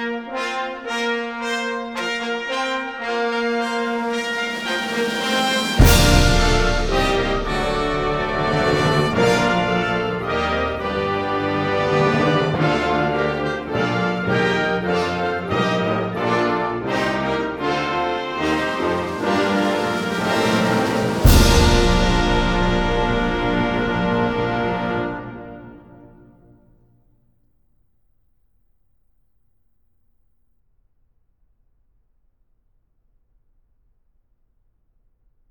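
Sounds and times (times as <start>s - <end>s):
flourish for wind band: 0.0s - 26.1s.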